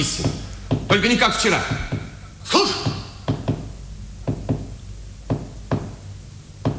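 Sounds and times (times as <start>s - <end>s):
speech: 0.0s - 1.9s, 2.5s - 2.9s
coded knocking tapped on a wall: 0.2s - 1.0s, 1.7s - 2.2s, 2.8s - 4.7s, 5.3s - 6.0s.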